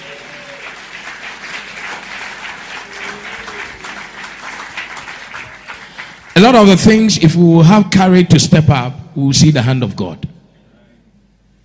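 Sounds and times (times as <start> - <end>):
people clapping: 0.0 - 7.2
speech: 6.4 - 10.4.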